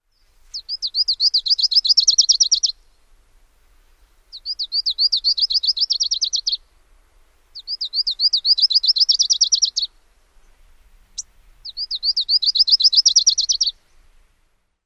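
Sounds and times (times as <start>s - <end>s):
bird songs: 0.0s - 3.1s, 4.3s - 6.7s, 7.5s - 14.0s.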